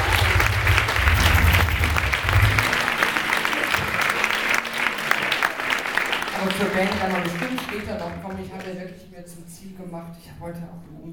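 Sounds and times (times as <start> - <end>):
low rumble: 0.0 - 3.1
audience applause: 0.0 - 8.8
speech: 6.8 - 11.1.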